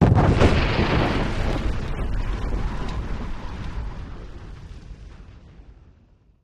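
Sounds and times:
rock and sand debris: 0:00.0 - 0:06.0
rock explosion: 0:00.0 - 0:06.4.

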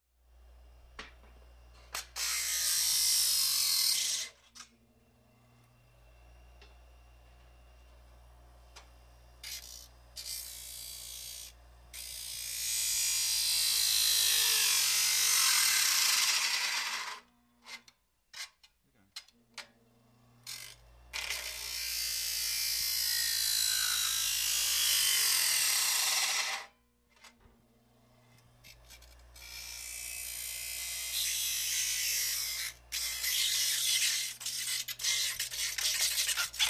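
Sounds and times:
electric grinder grinding: 0:01.9 - 0:04.7, 0:09.4 - 0:17.3, 0:20.4 - 0:26.7, 0:28.2 - 0:36.6.

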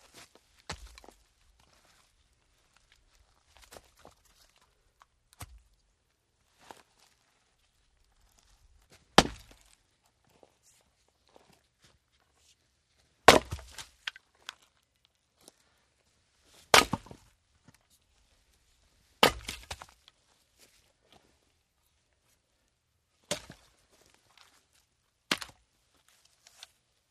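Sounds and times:
axe splitting logs outdoors: 0:09.1 - 0:09.7, 0:13.2 - 0:14.2, 0:16.7 - 0:17.3, 0:19.2 - 0:20.0, 0:23.3 - 0:23.6, 0:25.3 - 0:25.6.

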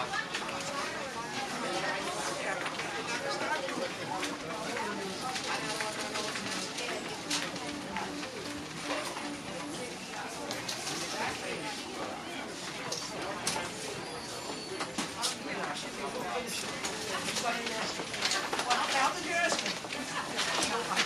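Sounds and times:
crowd in a busy souvenir store: 0:00.0 - 0:21.0.

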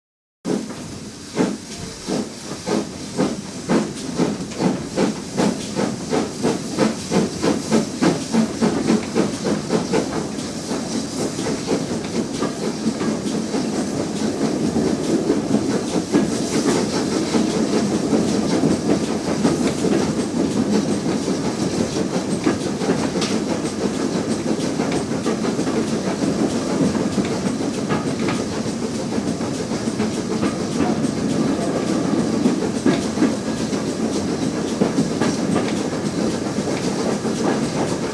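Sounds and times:
steam train starting slowly: 0:00.5 - 0:38.1.

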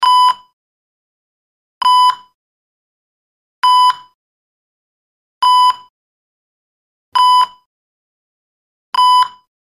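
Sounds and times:
EKG heart monitor medium pitched beep in hospital: 0:00.0 - 0:00.6, 0:01.8 - 0:02.4, 0:03.6 - 0:04.2, 0:07.2 - 0:07.7, 0:09.0 - 0:09.5.

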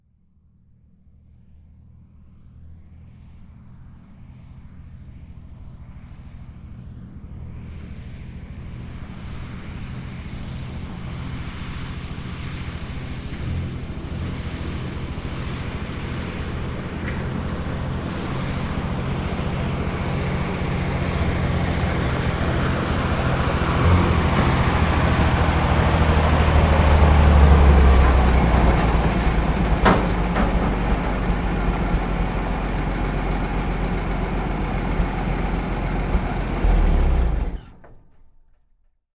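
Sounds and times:
2.5 T truck engine slow idle: 0:14.7 - 0:37.8.

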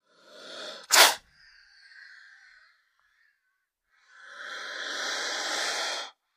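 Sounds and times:
Indian cobra hissing: 0:00.0 - 0:02.7, 0:04.0 - 0:06.2
Indian cobra breathing: 0:00.0 - 0:06.3.

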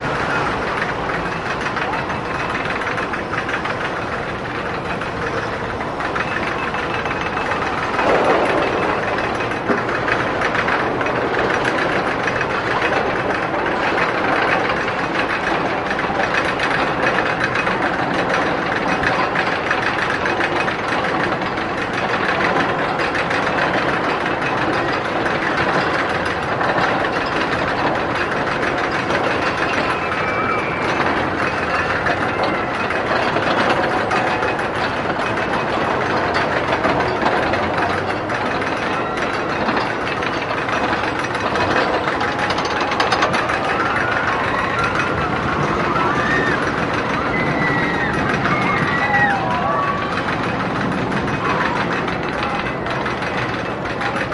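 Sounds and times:
roller coaster running clanks: 0:00.0 - 0:54.3.

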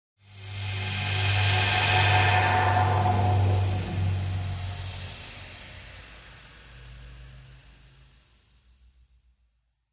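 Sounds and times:
washing machine electric buzz: 0:00.3 - 0:05.5.

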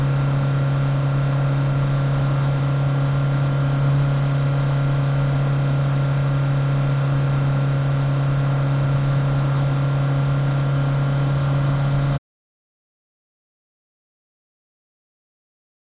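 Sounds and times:
four-cylinder sports car engine steady: 0:00.0 - 0:12.2.

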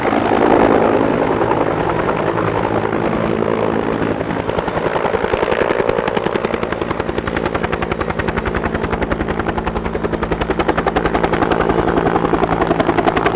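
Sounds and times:
Bell 212 helicopter landing: 0:00.0 - 0:13.3.

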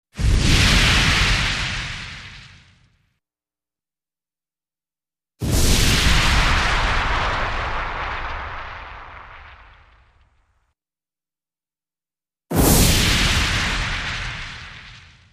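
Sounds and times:
explosive fire burst: 0:00.2 - 0:03.0, 0:05.4 - 0:10.4, 0:12.5 - 0:15.3.

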